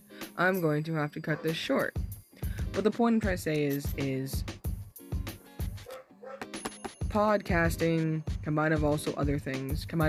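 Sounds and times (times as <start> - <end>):
speech: 0.4 - 2.0, 2.8 - 4.6, 7.1 - 10.0
dog barking in the background: 5.8 - 6.5.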